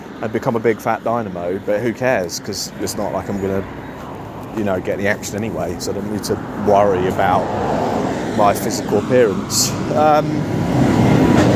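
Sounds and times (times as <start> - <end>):
tractor passing loudly in the South Country: 0.0 - 11.5
speech: 0.2 - 10.9.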